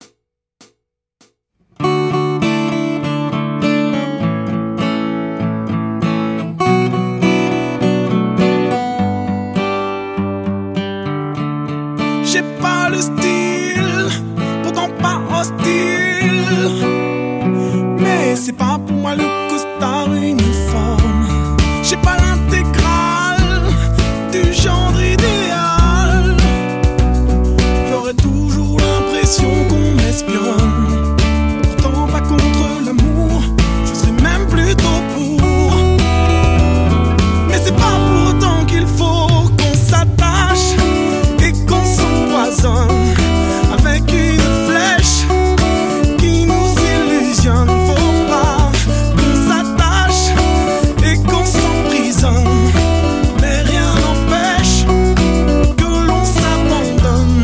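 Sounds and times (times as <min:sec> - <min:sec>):
guitar ensemble playing tutti: 0:01.8 - 0:57.4.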